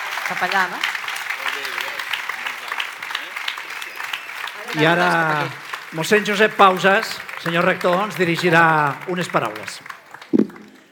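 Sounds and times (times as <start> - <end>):
audience applause: 0.0 - 10.8
speech: 0.3 - 1.9, 4.6 - 9.9
faint voices murmuring: 1.3 - 5.2.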